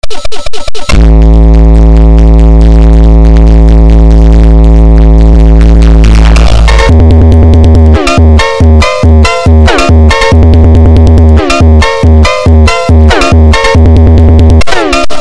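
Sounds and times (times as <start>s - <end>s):
funk superbass: 0.9s - 15.1s.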